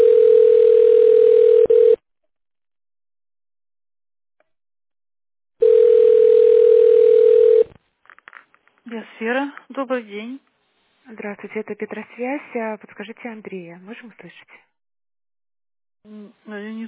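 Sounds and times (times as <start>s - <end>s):
telephone ringback tone while on hold: 0.0s - 2.0s, 5.6s - 7.7s
speech: 9.8s - 10.5s, 11.1s - 14.7s, 16.0s - 16.8s.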